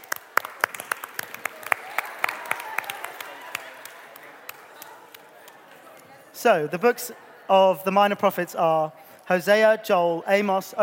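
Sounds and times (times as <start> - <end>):
audience applause: 0.0 - 6.0
speech: 6.4 - 10.8.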